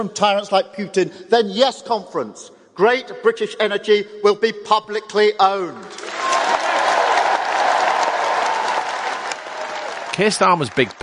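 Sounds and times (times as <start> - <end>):
speech: 0.0 - 6.2, 10.2 - 11.0
standing ovation at a Labour party conference for Keir Starmer: 5.8 - 11.0.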